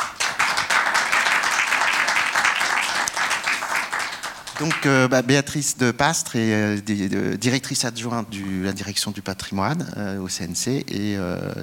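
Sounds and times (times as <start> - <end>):
audience applause welcoming a guest speaker at an evening event: 0.0 - 5.1
speech: 4.6 - 11.6.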